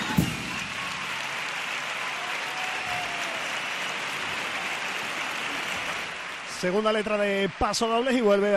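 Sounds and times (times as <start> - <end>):
audience applause: 0.1 - 8.5
speech: 6.6 - 8.5.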